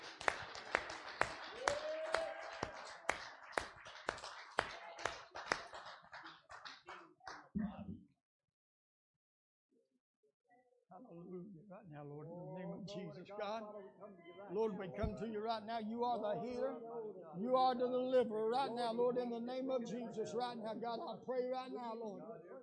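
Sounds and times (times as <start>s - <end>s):
audience clapping hands: 0.0s - 7.5s
speech: 11.0s - 22.6s.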